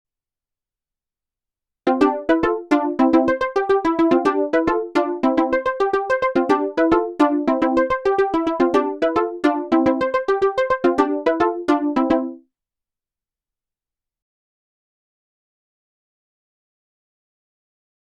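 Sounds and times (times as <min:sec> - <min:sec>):
Modal Electronics Cobalt5s synthesizer: 0:01.9 - 0:12.4.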